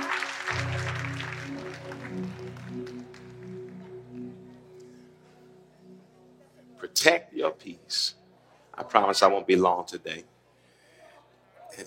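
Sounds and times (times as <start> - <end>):
audience clapping hands: 0.0 - 5.0
speech: 7.0 - 8.2, 8.8 - 10.3.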